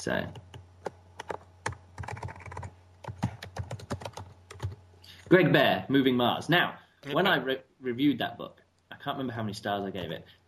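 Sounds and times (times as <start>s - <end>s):
speech: 0.0s - 0.4s, 5.3s - 10.4s
low steady hum: 0.0s - 10.4s
typing a search on a computer keyboard: 0.3s - 4.8s.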